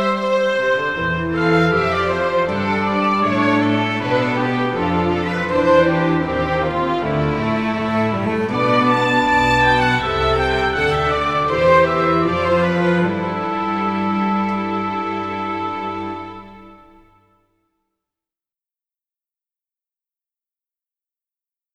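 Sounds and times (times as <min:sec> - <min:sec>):
strings: 0:00.0 - 0:17.3.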